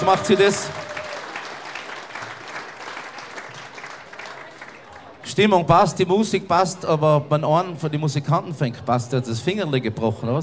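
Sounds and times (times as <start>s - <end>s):
speech: 0.0s - 0.9s, 5.4s - 10.4s
audience applause: 0.0s - 5.2s.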